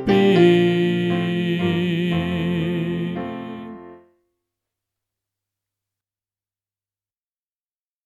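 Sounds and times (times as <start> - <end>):
soprano voice: 0.0 - 4.0.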